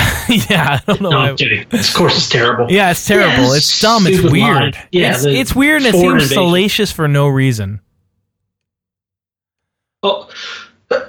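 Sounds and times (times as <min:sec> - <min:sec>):
person sneezing: 0:00.0 - 0:00.5
laughter: 0:00.0 - 0:07.6
speech: 0:00.3 - 0:07.9, 0:10.0 - 0:10.6.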